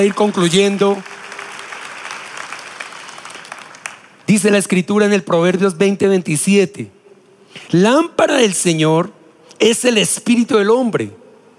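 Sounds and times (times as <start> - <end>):
speech: 0.0 - 1.1, 4.3 - 7.0, 7.6 - 11.2
audience applauding: 0.0 - 4.3.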